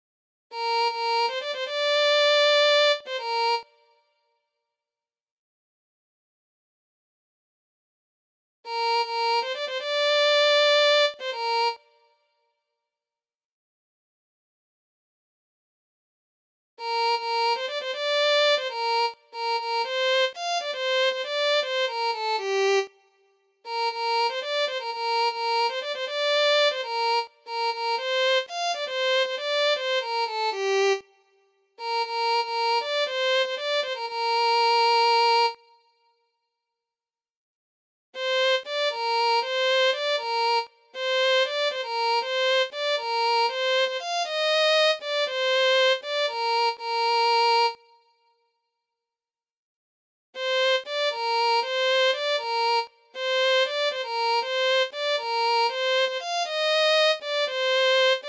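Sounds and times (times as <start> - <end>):
violin: 0.5 - 4.0, 8.7 - 12.1, 16.8 - 31.2, 31.8 - 36.0, 38.2 - 48.1, 50.4 - 58.2.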